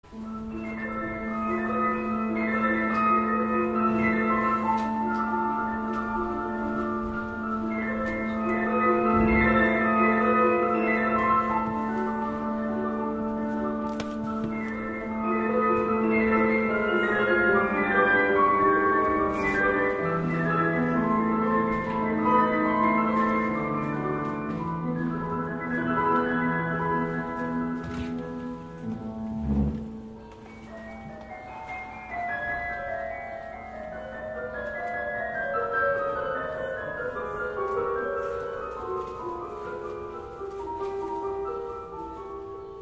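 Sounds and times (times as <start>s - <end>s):
piano: 0.0s - 42.8s.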